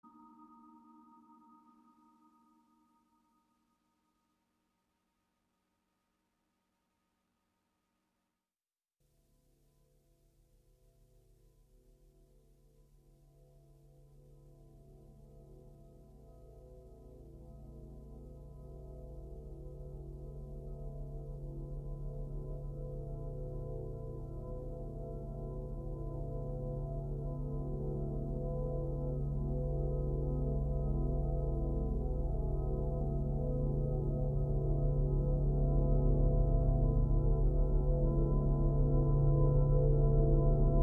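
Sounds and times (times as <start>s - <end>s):
ambient music: 16.1s - 40.8s.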